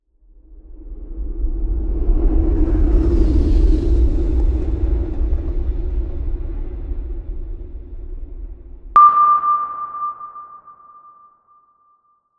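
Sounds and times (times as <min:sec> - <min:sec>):
space ambience: 0:00.0 - 0:09.9.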